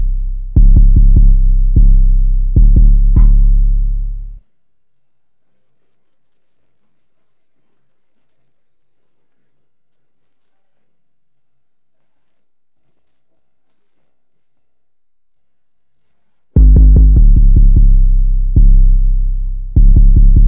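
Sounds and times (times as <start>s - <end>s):
bass: 0.0s - 4.4s, 16.6s - 20.4s.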